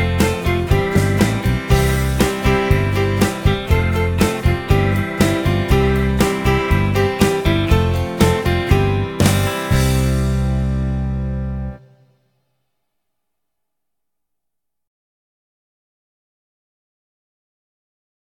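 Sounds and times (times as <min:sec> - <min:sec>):
keyboard: 0:00.0 - 0:12.1.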